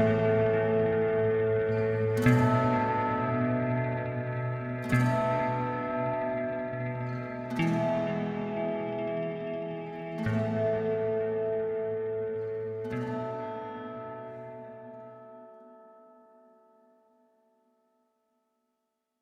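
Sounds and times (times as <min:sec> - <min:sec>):
instrumental music: 0:00.0 - 0:14.4.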